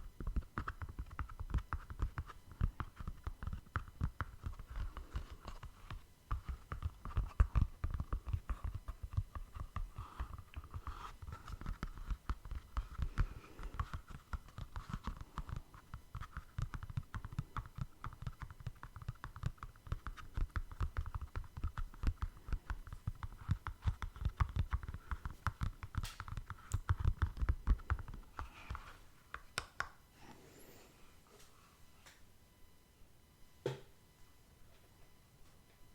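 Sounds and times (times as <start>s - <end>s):
faint steady whine: 0.0s - 35.9s
fast dense tapping with soft low thuds: 0.2s - 28.8s.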